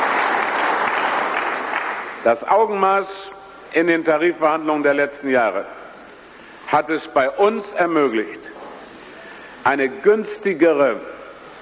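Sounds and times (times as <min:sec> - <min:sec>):
audience applause during a speech on the economy and wage bargaining: 0:00.0 - 0:02.2
speech: 0:02.2 - 0:05.8, 0:06.7 - 0:08.6, 0:09.6 - 0:11.2.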